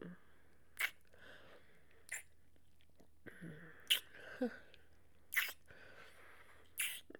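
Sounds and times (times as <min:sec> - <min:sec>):
wet noises: 0:00.8 - 0:01.1, 0:05.3 - 0:05.7, 0:06.8 - 0:07.1.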